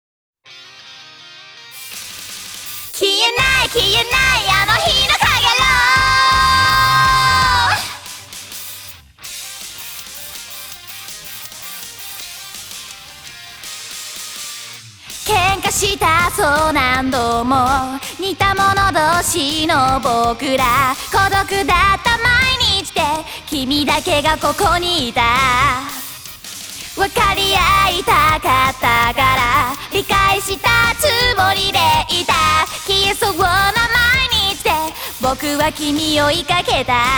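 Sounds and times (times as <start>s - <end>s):
a cappella singing: 3.0s - 8.0s, 15.2s - 26.0s, 27.0s - 37.1s.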